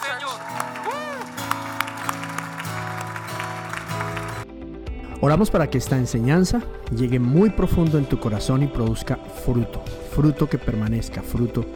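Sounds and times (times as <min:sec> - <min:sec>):
audience applauding: 0:00.0 - 0:04.4
keyboard or organ chords: 0:00.0 - 0:11.7
speech: 0:05.2 - 0:11.7.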